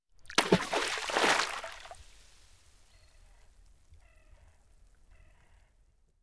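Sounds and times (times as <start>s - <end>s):
splash: 0.2s - 2.5s.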